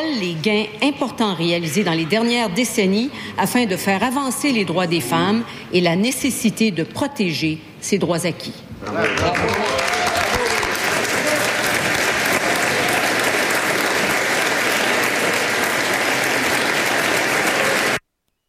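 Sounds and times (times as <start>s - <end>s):
speech: 0.0s - 9.8s
applause: 8.8s - 18.0s.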